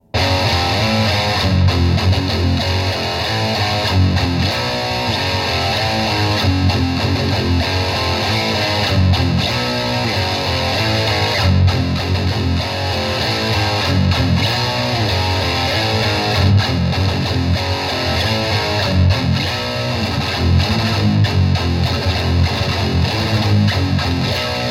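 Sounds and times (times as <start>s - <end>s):
metal music: 0.0s - 24.6s.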